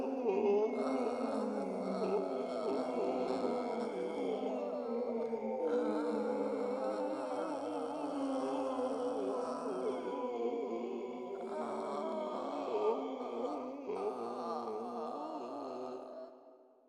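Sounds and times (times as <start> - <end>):
haunted crowd: 0.0 - 16.6.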